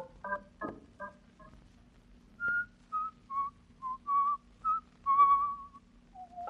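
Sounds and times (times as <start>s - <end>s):
person whistling a folk tune: 2.4s - 6.4s.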